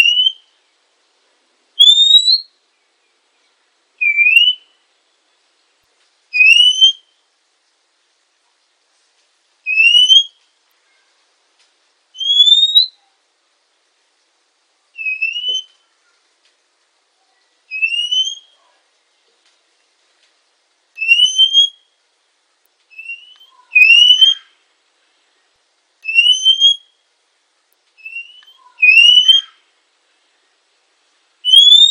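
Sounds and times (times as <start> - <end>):
female Oriental magpie-robin whistled notes: 1.8 - 2.5, 4.0 - 4.7, 6.4 - 7.1, 9.7 - 10.4, 12.2 - 13.0, 15.0 - 15.8, 17.7 - 18.6, 21.0 - 21.8, 22.9 - 24.5, 26.0 - 26.9, 28.0 - 29.6, 31.4 - 31.8.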